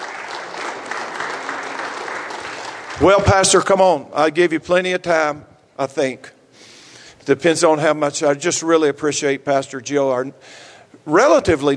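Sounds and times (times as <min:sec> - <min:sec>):
church congregation clapping hands: 0:00.0 - 0:04.3
speech: 0:03.0 - 0:06.4, 0:07.2 - 0:11.7.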